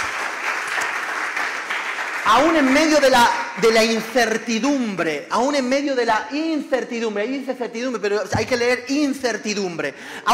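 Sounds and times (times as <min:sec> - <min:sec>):
audience applauding loudly: 0:00.0 - 0:03.8
speech: 0:02.3 - 0:10.3.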